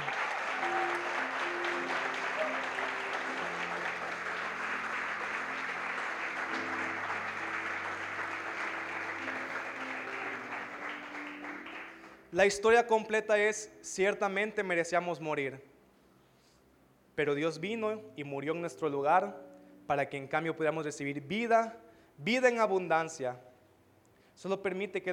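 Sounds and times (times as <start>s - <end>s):
audience applauding loudly: 0.0s - 12.4s
speech: 12.4s - 15.7s, 17.2s - 23.5s, 24.4s - 25.1s.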